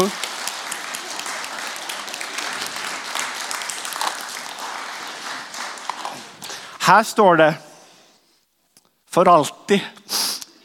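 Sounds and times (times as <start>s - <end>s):
speech: 0.0s - 0.2s, 6.9s - 7.7s, 9.2s - 10.0s
audience applause: 0.0s - 6.8s.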